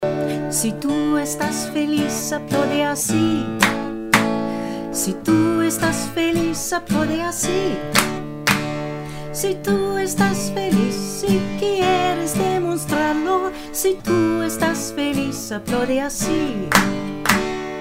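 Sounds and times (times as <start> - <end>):
person singing in Spanish: 0.0 - 8.2, 9.2 - 17.5.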